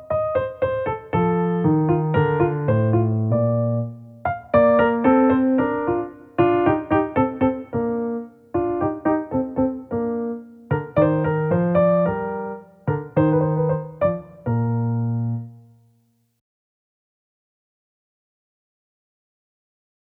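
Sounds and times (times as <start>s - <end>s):
piano allegro in B flat major: 0.0s - 16.0s.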